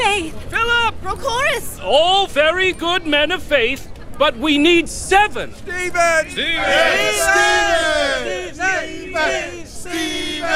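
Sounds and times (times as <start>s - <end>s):
speech: 1.0s - 10.5s
crowd chanting a name: 5.7s - 10.5s.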